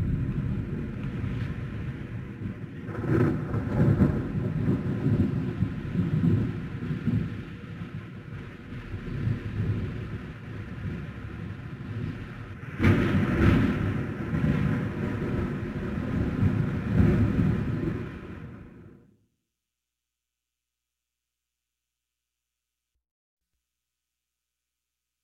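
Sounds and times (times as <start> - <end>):
rain: 0.0 - 19.0
thunder: 0.0 - 19.0.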